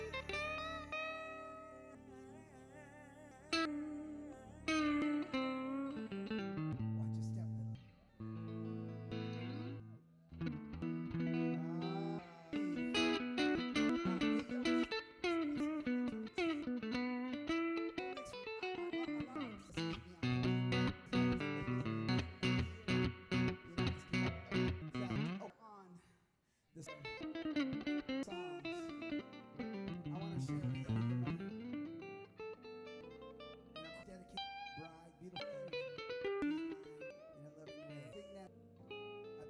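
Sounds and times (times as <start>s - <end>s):
guitar in stereo: 0.0s - 25.9s, 26.8s - 39.4s.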